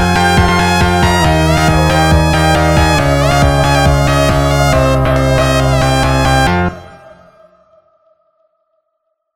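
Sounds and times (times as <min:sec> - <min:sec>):
sped up funk music: 0:00.0 - 0:06.8.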